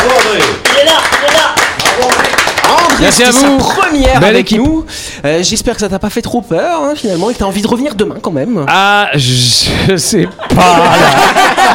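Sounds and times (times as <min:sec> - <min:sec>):
studio applause: 0:00.0 - 0:03.6
speech: 0:03.0 - 0:11.7
laughter: 0:09.7 - 0:11.7.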